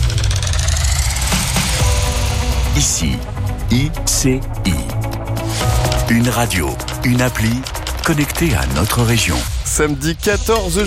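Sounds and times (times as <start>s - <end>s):
racing car engine roaring at the 24 Hours of Le Mans circuit: 0.0s - 3.5s
speech: 2.8s - 5.0s, 6.1s - 10.8s.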